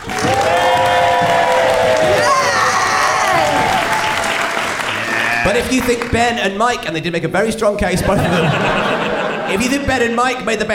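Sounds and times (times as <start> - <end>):
live audience applauding: 0.0 - 6.5
speech: 5.5 - 10.7
laughter: 7.8 - 10.2.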